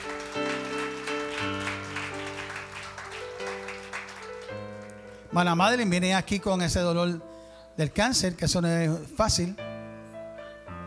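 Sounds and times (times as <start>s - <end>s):
audience applauding: 0.0s - 5.3s
speech: 5.3s - 9.6s.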